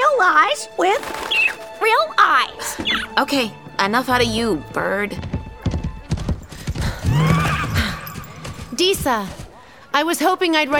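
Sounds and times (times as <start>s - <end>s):
speech: 0.3s - 5.3s, 8.8s - 9.4s, 10.0s - 10.7s
water spirit horse hooves clip-clopping: 4.6s - 10.7s
horse whinnying: 7.0s - 8.4s.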